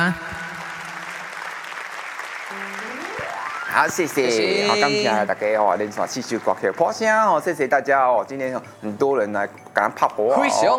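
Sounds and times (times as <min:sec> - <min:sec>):
speech: 0:00.0 - 0:00.3, 0:03.7 - 0:10.7
audience applause: 0:00.0 - 0:07.6.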